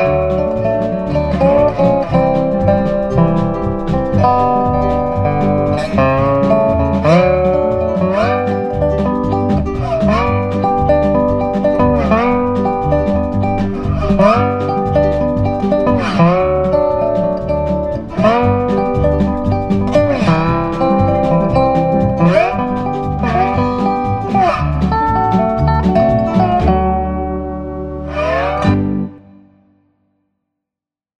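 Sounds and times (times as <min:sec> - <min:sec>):
steel guitar: 0:00.0 - 0:29.5.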